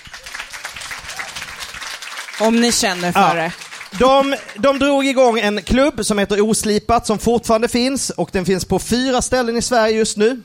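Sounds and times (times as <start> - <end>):
audience applause: 0.0 - 5.6
speech: 2.4 - 10.4.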